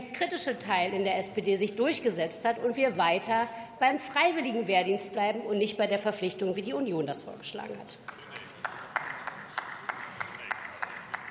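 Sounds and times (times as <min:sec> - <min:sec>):
speech: 0:00.2 - 0:08.2
clapping: 0:08.1 - 0:11.3.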